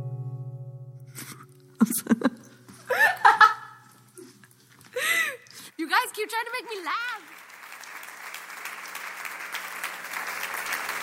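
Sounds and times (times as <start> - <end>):
speech: 1.8 - 2.4, 6.2 - 7.3
laughter: 1.8 - 3.8
audience clapping hands: 6.2 - 11.0.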